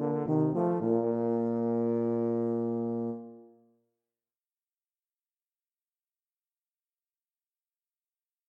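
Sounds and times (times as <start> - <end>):
duet of two tubas: 0.0 - 3.6.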